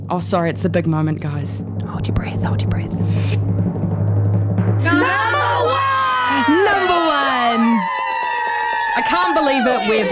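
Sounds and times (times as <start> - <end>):
speech: 0.1 - 3.9, 9.0 - 10.1
audience clapping and cheering: 4.9 - 10.1.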